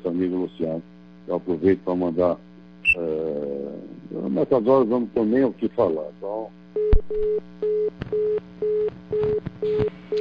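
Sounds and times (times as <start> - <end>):
speech: 0.1 - 8.2
telephone busy tone after a dropped phone call: 6.8 - 10.1.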